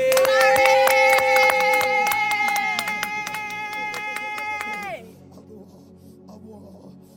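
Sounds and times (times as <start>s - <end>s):
audience clapping: 0.0s - 5.0s.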